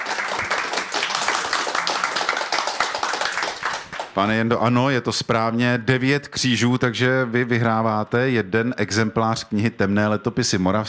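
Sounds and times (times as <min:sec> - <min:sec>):
audience applause: 0:00.0 - 0:04.2
speech: 0:04.2 - 0:10.8.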